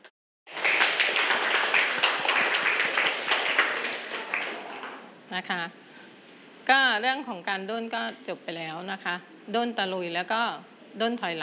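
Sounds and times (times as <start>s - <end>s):
students clapping in a classroom: 0.5s - 5.1s
speech: 5.4s - 5.8s, 6.7s - 11.4s.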